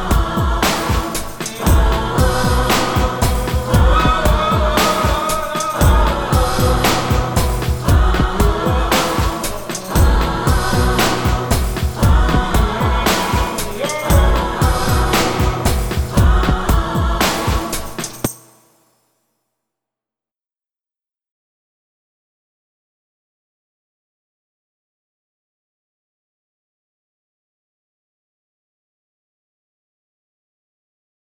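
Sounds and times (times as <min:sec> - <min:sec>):
karaoke singing: 0:00.0 - 0:18.3.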